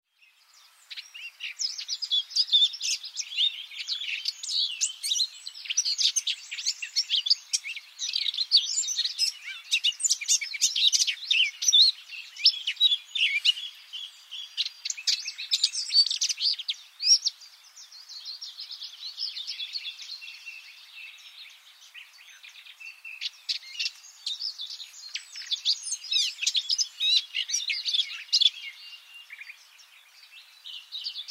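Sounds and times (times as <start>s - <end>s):
Eurasian blackcap singing: 0.1s - 31.2s.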